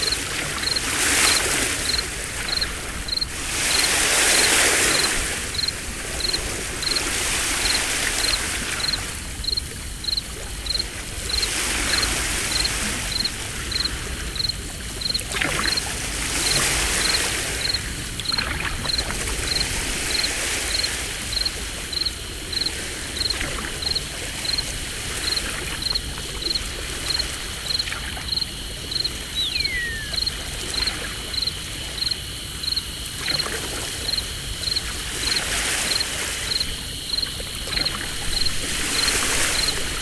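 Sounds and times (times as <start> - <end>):
very calm sea in summer: 0.0 - 40.0.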